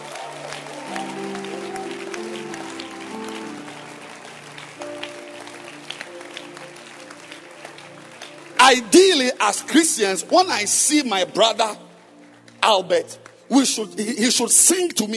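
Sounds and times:
audience clapping hands: 0:00.0 - 0:15.1
speech: 0:08.7 - 0:11.8, 0:12.7 - 0:15.1.

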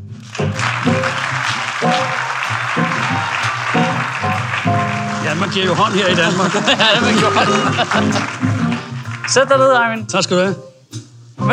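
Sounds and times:
studio audience applause for a guest on a Danish talk show: 0:00.0 - 0:09.5
loud punchy music chords: 0:00.5 - 0:09.5
laughter: 0:00.6 - 0:09.3
speech: 0:05.4 - 0:08.6, 0:09.3 - 0:10.7.

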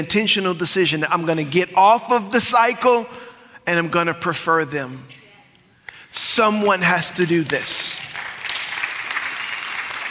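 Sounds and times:
speech: 0:00.0 - 0:05.2, 0:06.1 - 0:08.0
few people clapping: 0:07.2 - 0:10.0.

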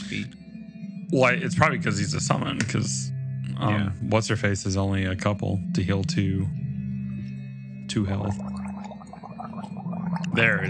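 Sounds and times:
speech: 0:00.1 - 0:00.4, 0:01.1 - 0:06.6, 0:07.9 - 0:08.5, 0:10.4 - 0:10.6
person gargling honey water: 0:08.3 - 0:10.6.

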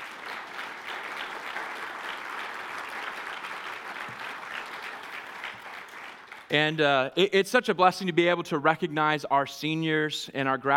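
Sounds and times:
audience round of applause: 0:00.0 - 0:06.5
speech: 0:06.5 - 0:10.7.

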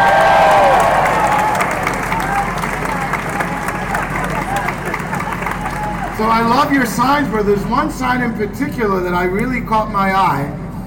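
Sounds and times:
crowd applauding: 0:00.0 - 0:06.6
speech: 0:06.4 - 0:10.6.

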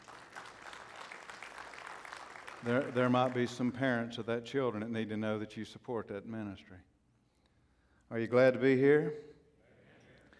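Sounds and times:
church congregation applauding the Temple Baptist Church baseball team: 0:00.0 - 0:03.9
speech: 0:02.6 - 0:06.9, 0:08.1 - 0:09.3.

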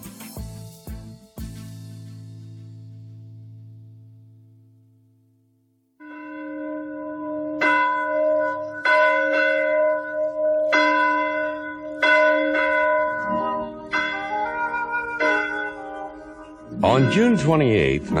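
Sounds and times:
church bells ringing in a steady peal: 0:06.0 - 0:18.1
speech: 0:17.0 - 0:18.1.

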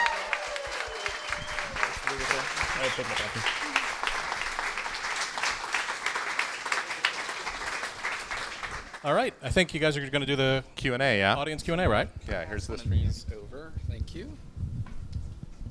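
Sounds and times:
faint voices and cheers: 0:00.0 - 0:03.9
audience applause: 0:00.0 - 0:09.1
speech: 0:03.0 - 0:03.7, 0:09.0 - 0:14.6.

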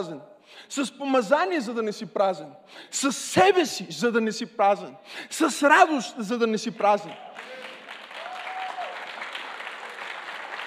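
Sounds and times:
speech: 0:00.0 - 0:07.6
crowd applauding: 0:07.1 - 0:10.6.

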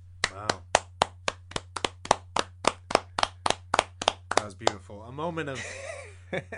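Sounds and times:
low constant hum: 0:00.0 - 0:06.5
people clapping: 0:00.2 - 0:04.8
speech: 0:04.4 - 0:06.5.

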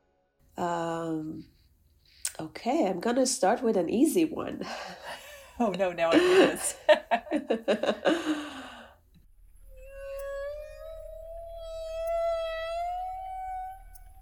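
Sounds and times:
speech: 0:00.6 - 0:01.6, 0:02.4 - 0:08.6
laughter: 0:05.0 - 0:08.7
humpback whale call: 0:09.5 - 0:14.1.

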